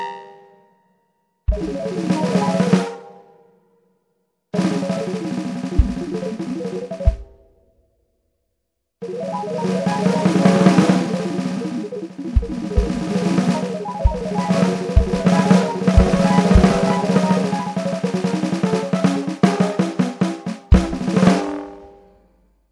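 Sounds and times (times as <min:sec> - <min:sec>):
ddrum4 electronic drums: 0:01.5 - 0:03.0, 0:04.6 - 0:07.5, 0:09.9 - 0:21.9.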